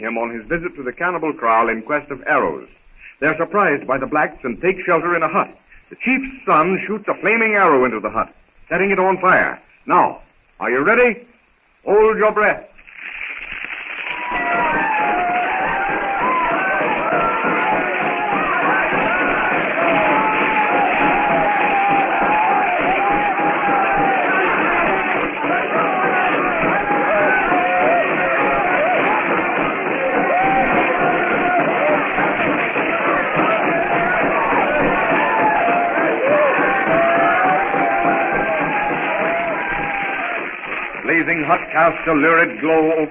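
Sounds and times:
speech: 0.0s - 12.7s, 41.8s - 43.1s
crowd yelling and whooping: 13.8s - 43.1s.

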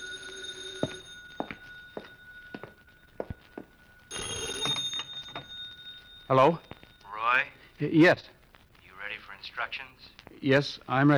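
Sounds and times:
telephone ringing: 0.0s - 8.1s
light footsteps on floor: 0.8s - 4.0s
speech: 6.3s - 6.7s, 7.4s - 8.4s, 9.4s - 11.1s.

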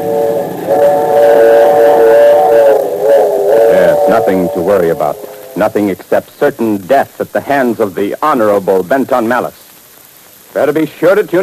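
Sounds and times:
train steam whistle blowing: 0.0s - 6.1s
faint rumble of the train: 0.0s - 8.8s
speech: 4.2s - 9.6s, 10.6s - 11.4s.

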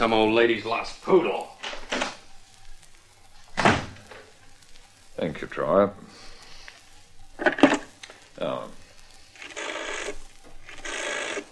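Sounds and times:
speech: 0.0s - 1.6s, 5.2s - 6.2s, 8.4s - 8.8s
door being shut: 1.6s - 2.2s, 3.5s - 4.3s.

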